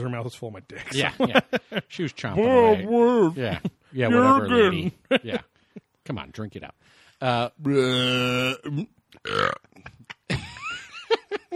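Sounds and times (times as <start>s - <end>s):
speech: 0.0s - 5.5s, 6.1s - 10.0s
people laughing: 0.8s - 1.9s, 3.4s - 5.5s, 10.0s - 11.5s
fake burp: 7.7s - 10.1s.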